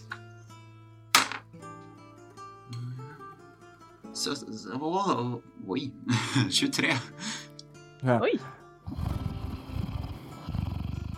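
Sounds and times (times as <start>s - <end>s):
speech: 4.2s - 7.4s, 8.0s - 9.0s
laughter: 6.1s - 7.2s
person imitating a cat purring: 8.8s - 11.1s.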